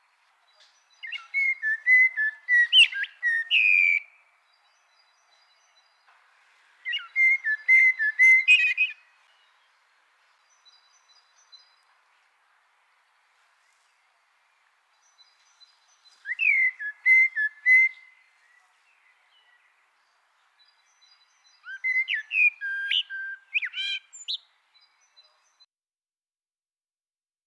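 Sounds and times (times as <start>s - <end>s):
Eurasian blackbird singing: 0.0s - 6.1s, 6.8s - 9.8s, 15.0s - 25.6s.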